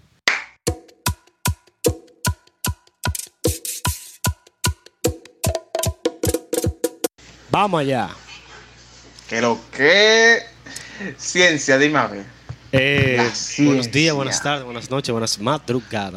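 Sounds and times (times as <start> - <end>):
rhythmic clapping: 0.3 - 7.1
speech: 7.5 - 8.2, 9.3 - 16.1.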